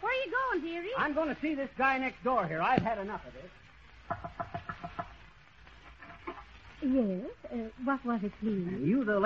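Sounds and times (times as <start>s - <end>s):
low noise: 0.0s - 9.2s
speech: 0.6s - 4.4s, 6.8s - 9.2s
chickens clucking in a yard: 4.0s - 5.3s.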